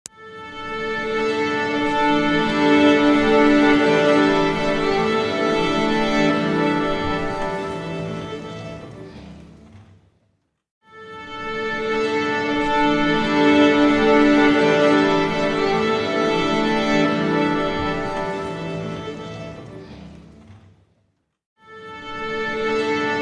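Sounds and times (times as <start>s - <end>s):
orchestra tuning: 0.2s - 9.0s, 10.9s - 19.8s, 21.7s - 23.1s.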